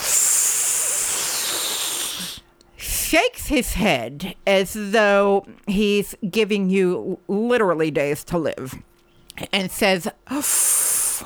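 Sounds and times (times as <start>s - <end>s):
voice imitating a sharp intake of breath through teeth: 0.0s - 2.5s, 10.3s - 11.2s
speech: 3.1s - 11.2s.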